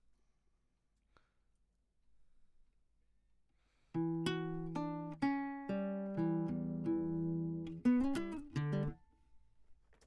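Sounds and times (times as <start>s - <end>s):
classical guitar: 3.9s - 9.1s.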